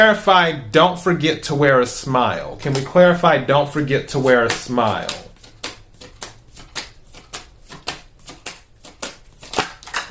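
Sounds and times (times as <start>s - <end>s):
speech: 0.0s - 5.2s
tarot cards being shuffled during a reading: 2.5s - 10.0s.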